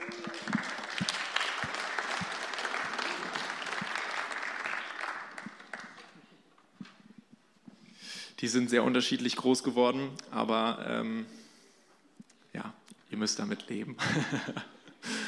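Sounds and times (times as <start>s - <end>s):
audience applause: 0.0s - 6.2s
speech: 8.4s - 11.4s, 13.2s - 14.8s
laughter: 14.0s - 15.2s.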